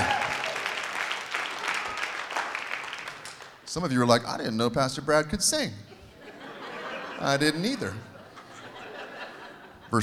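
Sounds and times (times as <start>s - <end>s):
audience clapping: 0.0s - 3.6s
speech: 3.7s - 5.9s, 7.2s - 8.1s
laughter: 5.9s - 10.0s.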